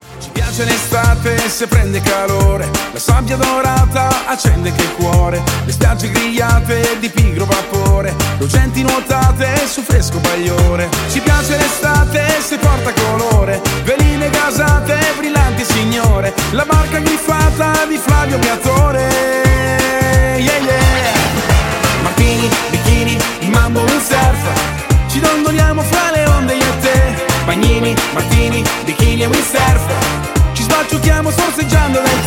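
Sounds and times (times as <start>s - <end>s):
mambo music: 0.0s - 32.2s.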